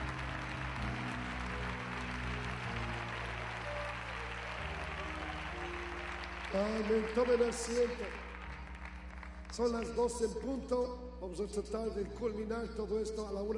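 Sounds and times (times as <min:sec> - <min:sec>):
audience applause: 0:00.0 - 0:10.5
speech: 0:06.5 - 0:08.2, 0:09.6 - 0:13.5.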